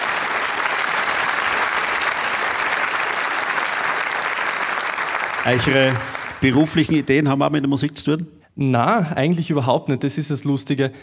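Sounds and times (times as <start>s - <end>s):
audience clapping: 0.0s - 7.2s
speech: 5.4s - 11.0s.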